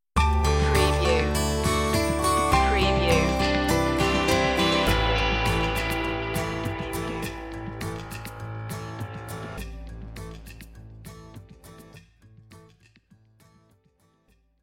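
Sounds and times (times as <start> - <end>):
ocean breeze music stinger: 0.2 - 11.9.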